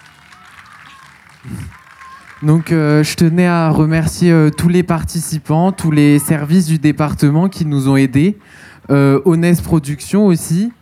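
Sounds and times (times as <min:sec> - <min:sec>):
crowd applauding: 0:00.0 - 0:06.2
speech: 0:01.4 - 0:01.8, 0:02.4 - 0:10.8.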